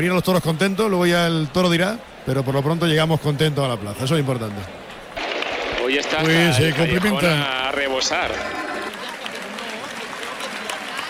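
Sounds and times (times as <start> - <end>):
speech: 0.0 - 4.8, 5.9 - 8.6
crowd ovation at the Almería bullring for the trio of bullfighters: 5.2 - 11.0.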